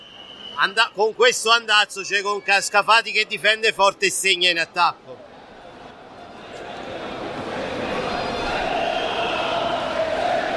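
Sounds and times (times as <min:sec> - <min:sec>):
speech: 0:00.6 - 0:05.2
fans chanting in the stands: 0:06.7 - 0:10.5.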